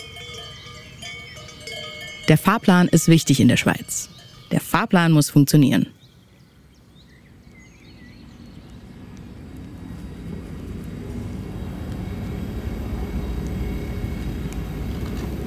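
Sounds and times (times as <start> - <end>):
trains arriving at a train station: 0.0 - 5.9, 9.9 - 15.4
speech: 2.3 - 6.0.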